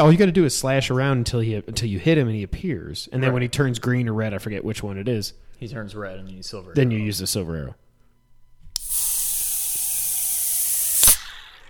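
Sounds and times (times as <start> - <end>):
speech: 0.0 - 7.8
Sam Adams Nitro beer can opening with a hiss: 8.8 - 11.6.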